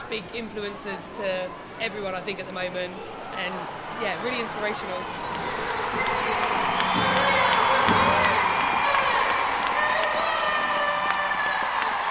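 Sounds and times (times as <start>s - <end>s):
speech: 0.1s - 7.4s
stadium crowd applauding as teams enter: 4.4s - 12.1s.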